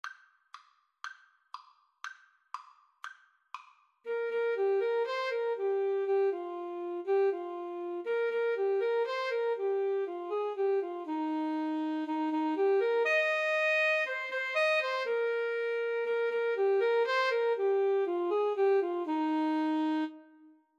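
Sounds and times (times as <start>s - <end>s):
alto saxophone: 4.1s - 20.7s.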